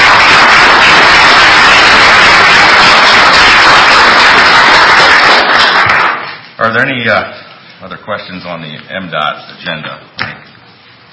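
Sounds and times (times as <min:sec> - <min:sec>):
round of applause: 0:00.0 - 0:06.4
speech: 0:06.8 - 0:07.3, 0:08.0 - 0:10.1.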